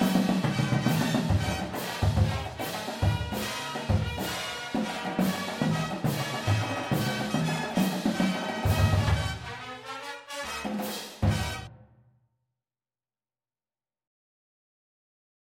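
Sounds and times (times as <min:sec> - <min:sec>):
full drumline: 0:00.0 - 0:11.7
music: 0:00.0 - 0:12.2.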